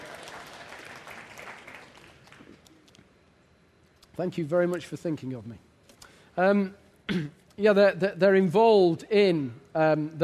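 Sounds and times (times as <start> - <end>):
audience applause: 0.0 - 2.6
speech: 4.2 - 5.7, 6.4 - 10.2.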